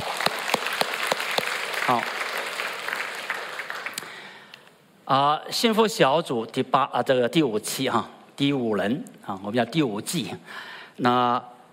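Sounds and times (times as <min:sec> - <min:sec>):
audience applause: 0:00.0 - 0:04.2
speech: 0:01.9 - 0:02.1, 0:05.1 - 0:11.5.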